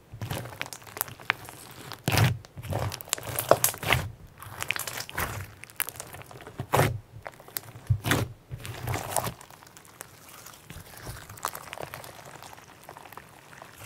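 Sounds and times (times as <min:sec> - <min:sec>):
sponge slime squeezed and pressed: 0:00.0 - 0:13.8.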